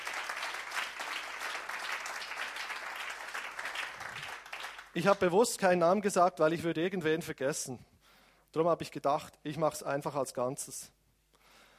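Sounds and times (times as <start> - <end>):
audience applause: 0.0 - 5.0
speech: 5.0 - 7.9, 8.5 - 11.0.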